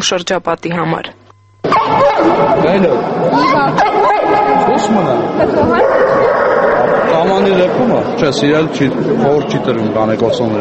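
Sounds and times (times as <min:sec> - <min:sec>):
speech: 0:00.0 - 0:01.2, 0:01.9 - 0:10.5
dogs barking, yipping and whimpering at a dog exhibition: 0:01.6 - 0:07.3
people chattering: 0:01.6 - 0:10.5.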